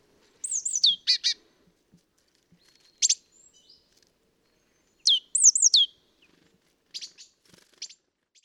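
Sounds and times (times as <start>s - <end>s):
great tit calling: 0.4s - 1.4s, 2.7s - 3.9s, 4.5s - 6.4s.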